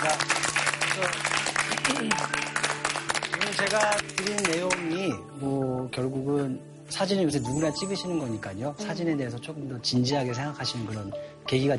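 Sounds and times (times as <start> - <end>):
audience applause: 0.0 - 4.8
speech: 3.6 - 11.7.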